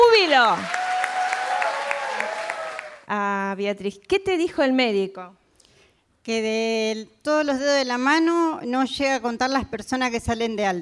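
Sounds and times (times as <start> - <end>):
audience applauding: 0.0 - 3.1
speech: 0.3 - 0.8, 3.1 - 5.4, 6.3 - 10.8.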